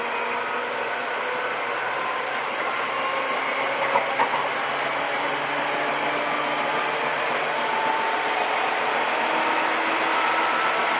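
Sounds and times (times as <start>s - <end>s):
Seibu old 2000-series train rumble and hiss: 0.0s - 10.9s.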